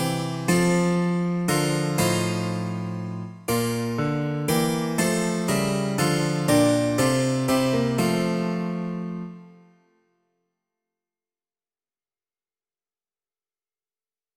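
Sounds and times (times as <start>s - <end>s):
harpsichord: 0.0s - 9.4s
piano: 0.0s - 10.0s.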